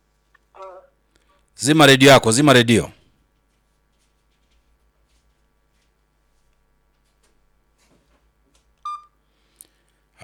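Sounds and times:
faint low hum: 0:00.0 - 0:10.2
speech: 0:01.6 - 0:03.0
telephone keypad DTMF tone: 0:08.8 - 0:09.1.

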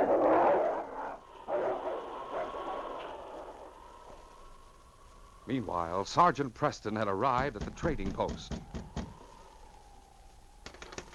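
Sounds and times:
wolf pack growling angrily: 0:00.0 - 0:04.4
speech: 0:05.5 - 0:08.8.

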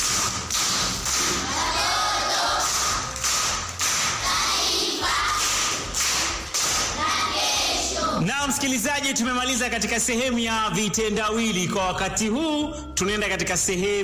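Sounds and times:
group applause for a guest: 0:00.0 - 0:08.2
speech: 0:08.6 - 0:14.0.

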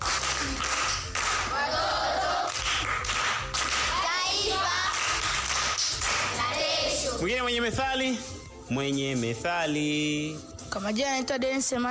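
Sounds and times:
primary school pupils clapping for a visiting guest: 0:00.0 - 0:06.6
speech: 0:07.4 - 0:11.8.

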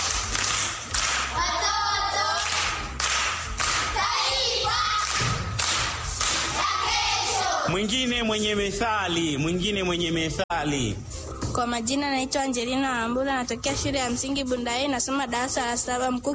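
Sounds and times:
primary school pupils clapping for a schoolgirl: 0:00.0 - 0:06.8
speech: 0:07.7 - 0:16.3.

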